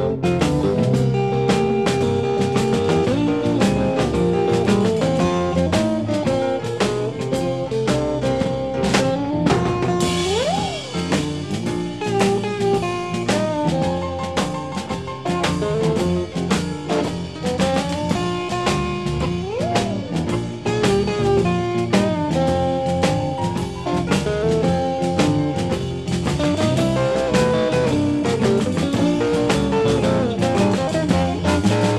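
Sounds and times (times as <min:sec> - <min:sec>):
honky tonk music: 0:00.0 - 0:31.9.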